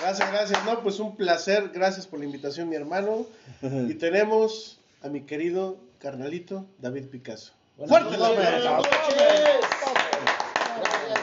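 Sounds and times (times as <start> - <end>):
speech: 0.0 - 10.1
people calling out and cheering: 8.0 - 11.2
audience applause: 8.6 - 11.2.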